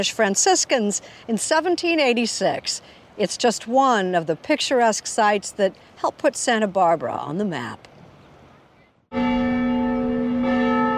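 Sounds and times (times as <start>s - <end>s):
speech: 0.0s - 7.9s
mission church bells ringing: 9.1s - 10.9s.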